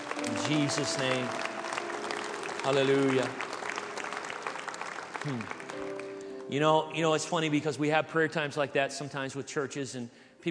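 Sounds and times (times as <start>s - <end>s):
church congregation clapping hands: 0.0s - 7.5s
speech: 0.5s - 1.5s, 2.6s - 3.4s, 5.2s - 5.6s, 6.5s - 10.4s.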